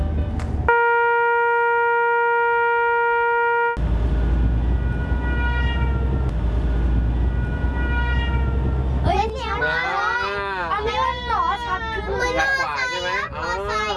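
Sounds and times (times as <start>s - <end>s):
heavy train rumble: 0.0s - 0.7s, 3.8s - 13.9s
passing train horn: 0.7s - 3.8s, 4.8s - 6.2s, 7.3s - 8.7s
excited voices chattering: 9.1s - 13.9s.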